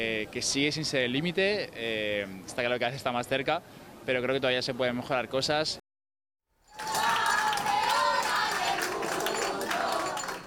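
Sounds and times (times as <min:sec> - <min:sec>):
speech: 0:00.0 - 0:05.8
scattered clapping: 0:06.7 - 0:10.4
crowd cheering welcoming champions: 0:06.8 - 0:10.4.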